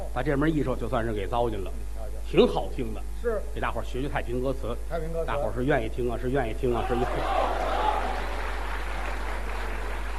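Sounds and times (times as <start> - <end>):
speech: 0.2 - 7.6
audience applause at a traditional Chinese comic performance: 6.9 - 10.1.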